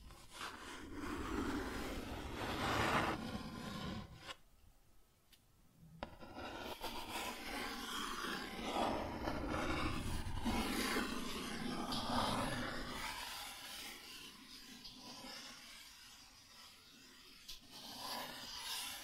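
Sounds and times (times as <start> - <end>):
cardboard scratched and rubbed: 0.1 - 4.4, 6.2 - 13.4.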